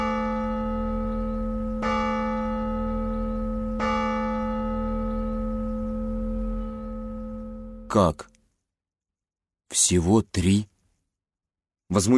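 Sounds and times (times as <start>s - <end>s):
tower clock bell striking the hour: 0.0s - 8.0s
speech: 7.9s - 8.3s, 9.8s - 10.7s, 11.9s - 12.1s.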